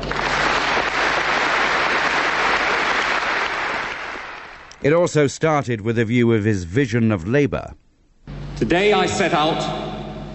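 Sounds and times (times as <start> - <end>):
massive applause from Labour Party conference audience: 0.0 - 4.8
speech: 4.8 - 7.8, 8.6 - 10.3.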